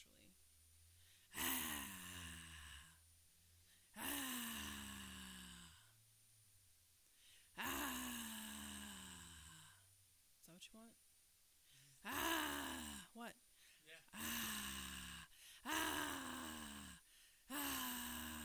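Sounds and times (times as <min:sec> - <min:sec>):
woman growling: 0:01.3 - 0:03.0, 0:04.0 - 0:05.9, 0:07.6 - 0:09.8, 0:12.0 - 0:13.1, 0:14.1 - 0:18.4.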